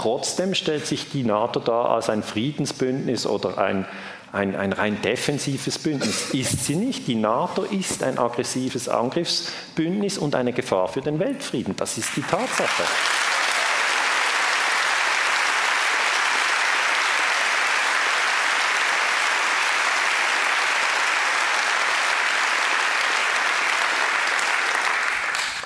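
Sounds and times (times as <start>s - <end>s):
speech: 0.0s - 13.2s
audience applause: 12.1s - 25.6s.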